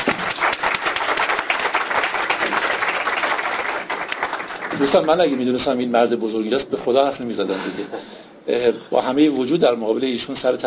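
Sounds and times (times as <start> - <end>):
audience applause: 0.0 - 5.5
speech: 4.8 - 10.6.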